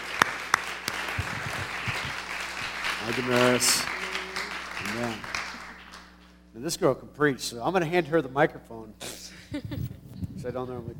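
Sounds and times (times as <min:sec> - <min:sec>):
audience applause at a church service welcoming a speaker: 0:00.0 - 0:06.3
speech: 0:03.1 - 0:04.0, 0:04.8 - 0:05.4, 0:06.6 - 0:10.9.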